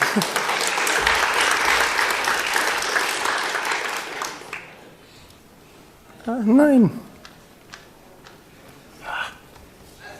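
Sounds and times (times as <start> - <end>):
audience applause: 0.0 - 4.9
speech: 0.2 - 0.4, 6.3 - 7.1.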